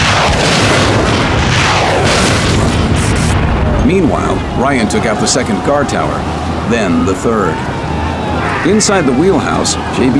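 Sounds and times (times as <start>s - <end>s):
crackling debris: 0.0s - 5.4s
explosions as rockets blow up boats: 0.0s - 6.7s
speech: 3.9s - 7.8s, 8.6s - 10.1s.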